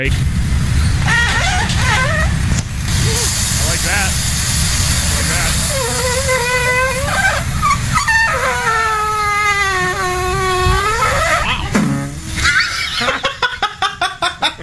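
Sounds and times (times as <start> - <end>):
waffle maker making squeaky toot noises: 0.7 - 2.6, 3.2 - 11.7
laughter: 12.4 - 14.6.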